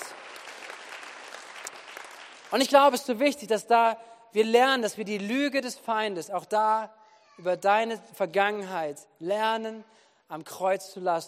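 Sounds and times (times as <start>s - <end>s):
audience clapping: 0.0s - 3.1s
speech: 2.5s - 11.2s.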